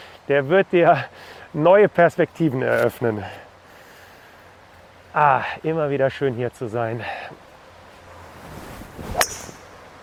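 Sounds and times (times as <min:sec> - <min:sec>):
speech: 0:00.3 - 0:03.5, 0:05.2 - 0:07.4
golf ball struck with a fairway wood on a course: 0:09.1 - 0:09.8.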